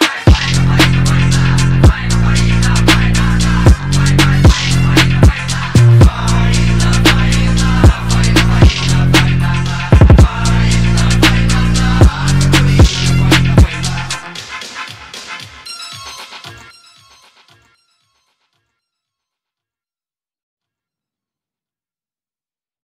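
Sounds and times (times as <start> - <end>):
phonk remix: 0.0 - 17.8.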